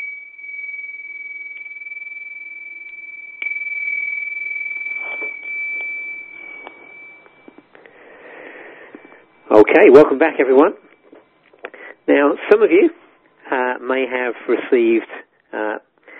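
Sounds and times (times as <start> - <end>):
hand bells ringing: 0.0 - 11.5
speech: 9.6 - 10.8, 12.1 - 13.0, 13.9 - 15.8.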